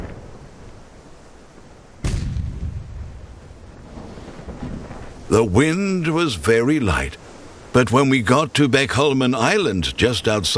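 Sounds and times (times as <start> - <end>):
cannon salute firing between rocks and town: 2.0 - 3.2
speech: 5.3 - 10.5.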